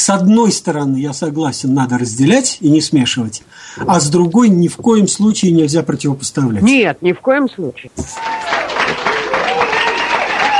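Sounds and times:
speech: 0:00.1 - 0:09.0
audience applause at a discussion event: 0:08.1 - 0:10.5.

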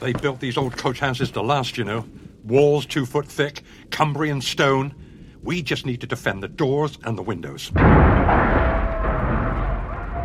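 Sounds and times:
speech: 0:00.0 - 0:08.4
cars exploding: 0:07.8 - 0:10.2.

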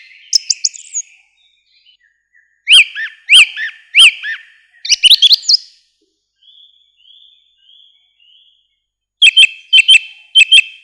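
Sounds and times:
song thrush singing: 0:00.0 - 0:10.8.

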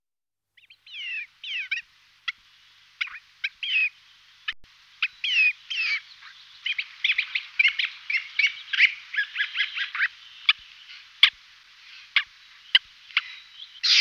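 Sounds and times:
Siberian jay calls: 0:00.7 - 0:02.4, 0:05.0 - 0:14.0.

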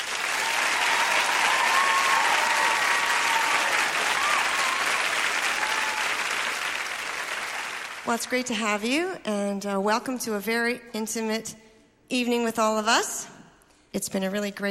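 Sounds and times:
concert audience applause for a band member on stage: 0:00.0 - 0:08.1
speech: 0:08.1 - 0:13.3, 0:13.9 - 0:14.6.

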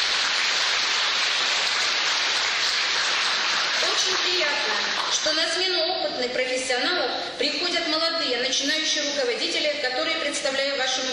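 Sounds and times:
audience applause: 0:00.0 - 0:04.9
speech: 0:04.1 - 0:11.1.

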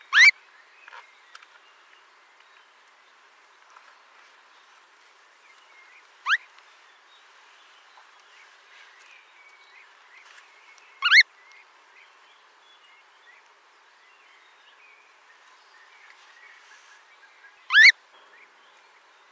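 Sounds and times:
Eurasian stone-curlew Burhinus oedicnemus shrill rising call: 0:00.0 - 0:00.4, 0:06.2 - 0:06.4, 0:11.0 - 0:11.2, 0:17.7 - 0:18.0.

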